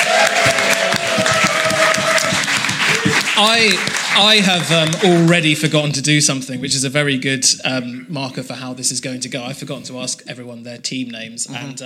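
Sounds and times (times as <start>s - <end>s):
whoops and cheers: 0.0s - 3.4s
crowd applause: 0.0s - 6.0s
speech: 3.4s - 11.8s.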